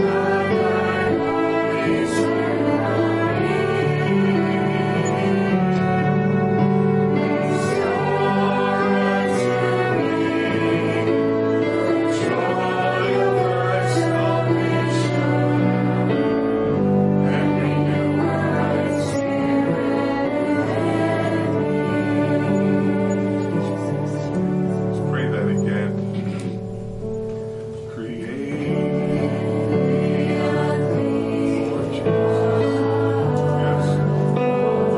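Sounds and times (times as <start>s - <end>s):
piano playing a prelude: 0.0s - 34.9s
violin playing a prelude: 0.0s - 34.9s.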